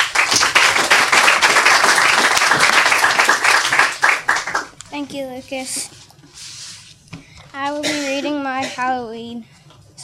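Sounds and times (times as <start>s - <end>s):
audience applause at a children's author reading event: 0.0s - 4.8s
speech: 5.0s - 6.0s, 7.6s - 9.5s.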